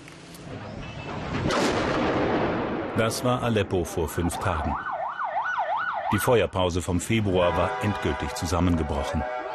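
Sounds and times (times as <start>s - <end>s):
bombing explosive blasts in a city: 0.5s - 4.1s
heavy gunfire in a city: 1.3s - 3.3s
speech: 3.0s - 4.9s, 6.1s - 9.4s.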